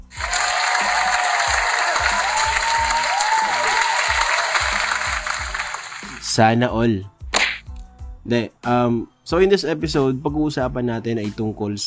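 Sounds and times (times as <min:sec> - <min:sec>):
applause: 0:00.0 - 0:06.3
speech: 0:06.4 - 0:07.2, 0:08.3 - 0:11.8.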